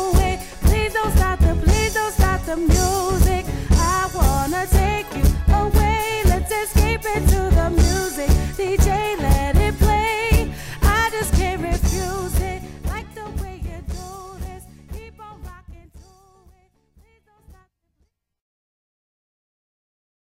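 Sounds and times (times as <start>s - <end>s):
party band playing: 0.0s - 15.7s.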